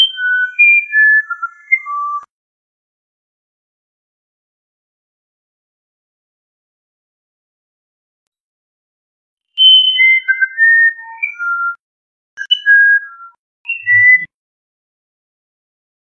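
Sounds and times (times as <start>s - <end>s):
musician wren whistling a phrase: 0.0s - 2.3s, 9.6s - 11.8s, 12.4s - 14.3s.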